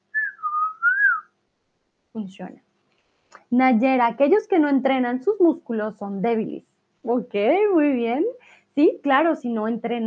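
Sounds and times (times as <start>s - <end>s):
person whistling a birdlike tune imitating bird song: 0.1s - 1.3s
speech: 2.2s - 2.7s, 3.5s - 10.0s.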